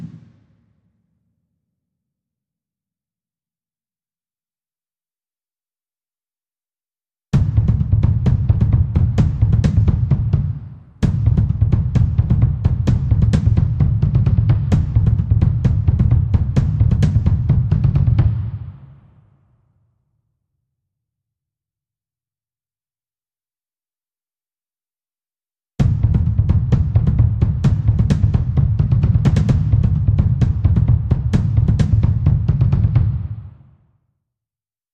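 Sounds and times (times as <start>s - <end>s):
bass drum loop layer: 7.3s - 18.4s, 25.8s - 33.1s.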